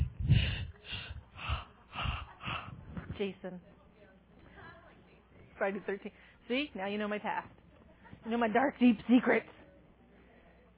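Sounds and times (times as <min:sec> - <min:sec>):
voice imitating Darth Vader's heavy mechanical breathing: 0:00.0 - 0:03.3
speech: 0:03.2 - 0:03.8, 0:05.6 - 0:07.6, 0:08.2 - 0:09.6.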